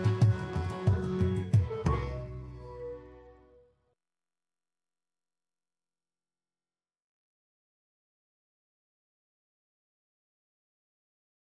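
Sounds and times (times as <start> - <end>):
traditional Celtic instrumental song: 0.0 - 3.8.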